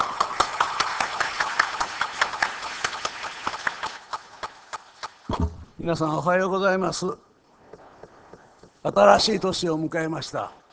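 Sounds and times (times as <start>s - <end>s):
audience applauding: 0.0s - 4.8s
speech: 5.4s - 7.3s, 8.8s - 10.6s.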